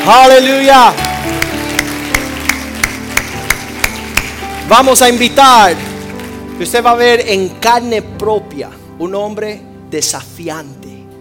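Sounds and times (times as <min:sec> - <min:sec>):
speech: 0:00.0 - 0:01.1, 0:04.7 - 0:05.9, 0:06.6 - 0:10.8
audience clapping in unison: 0:00.0 - 0:07.2.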